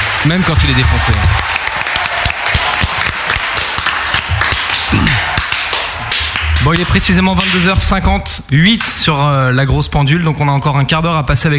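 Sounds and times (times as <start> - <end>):
audience applause for a band: 0.0 - 8.0
speech: 0.2 - 1.6, 6.6 - 11.5.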